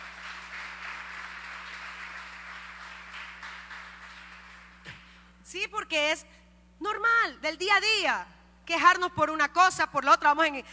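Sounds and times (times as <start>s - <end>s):
crowd applauding: 0.0s - 4.8s
low electrical hum: 0.0s - 10.7s
speech: 5.5s - 10.7s.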